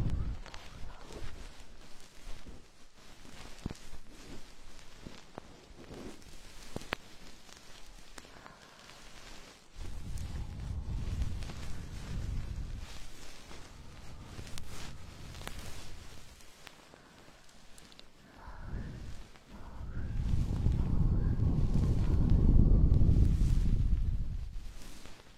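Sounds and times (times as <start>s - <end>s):
deep rumbling: 0.0s - 1.9s, 9.8s - 16.4s, 18.2s - 25.2s
goose-feather stick rustling and scratching in ear cleaning: 0.0s - 25.3s.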